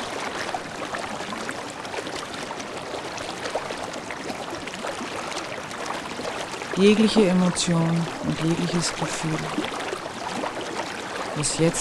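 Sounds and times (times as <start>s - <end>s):
water flowing: 0.0s - 11.7s
speech: 6.8s - 9.8s, 11.4s - 11.7s.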